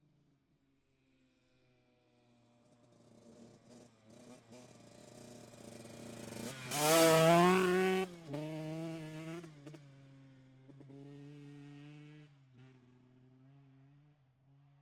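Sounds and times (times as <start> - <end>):
TM 125 motorcycle passing by outside: 2.9 - 12.9.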